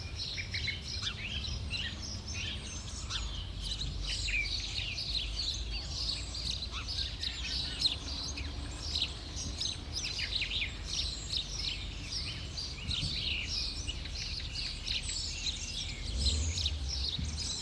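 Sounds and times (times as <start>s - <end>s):
birds in winter: 0.0s - 17.6s.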